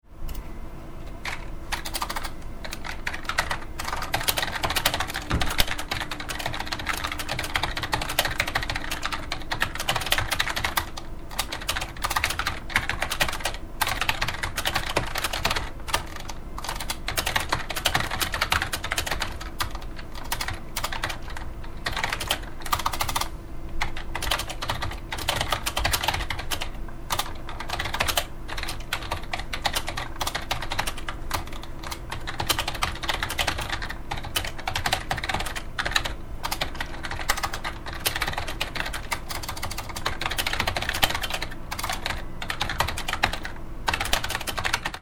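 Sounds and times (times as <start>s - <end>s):
typing: 1.2s - 45.0s.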